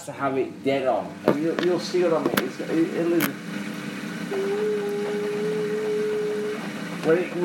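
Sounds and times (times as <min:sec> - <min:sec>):
speech: 0:00.0 - 0:03.7, 0:04.3 - 0:05.0, 0:07.0 - 0:07.4
Bosch washing machine spinning clothes: 0:00.0 - 0:07.4.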